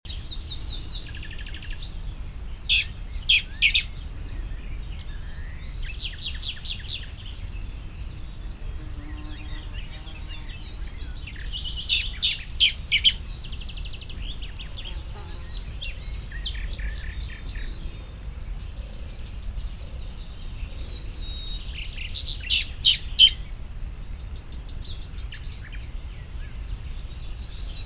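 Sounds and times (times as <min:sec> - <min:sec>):
other small birds trilling and whistling: 0:00.1 - 0:27.8
Common blackbird giving harsh call notes: 0:02.7 - 0:03.9.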